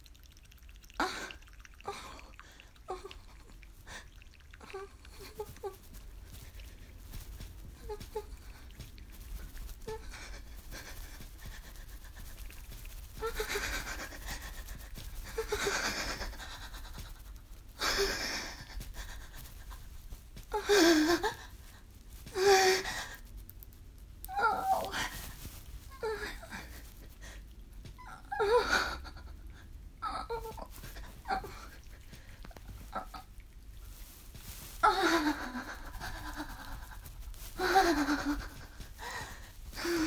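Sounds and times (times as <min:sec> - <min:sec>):
wet noises: 0:00.0 - 0:40.0
person moaning: 0:24.3 - 0:25.0.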